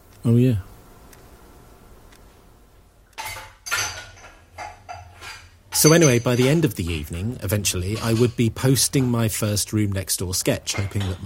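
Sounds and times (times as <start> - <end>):
speech: 0.2 - 0.7, 5.8 - 11.2
crockery and cutlery clattering into a dishwasher rack: 3.2 - 7.2, 7.8 - 9.3, 10.7 - 11.2.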